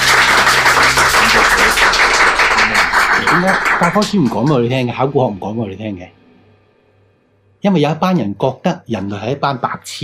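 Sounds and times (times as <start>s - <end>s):
audience applause: 0.0s - 4.6s
speech: 3.4s - 6.2s, 7.6s - 10.0s.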